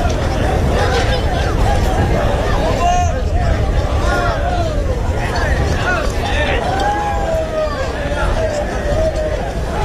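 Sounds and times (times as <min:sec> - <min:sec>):
crowd noise at the encierro del pilón bull run with cows: 0:00.0 - 0:09.8.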